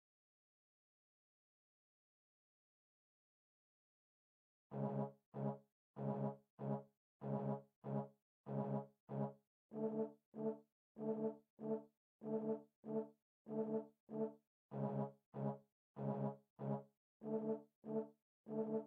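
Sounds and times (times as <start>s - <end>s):
trombones: 4.7s - 18.8s.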